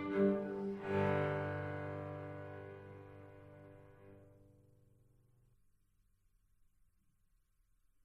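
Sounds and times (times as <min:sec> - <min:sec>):
minuet: 0:00.0 - 0:04.3.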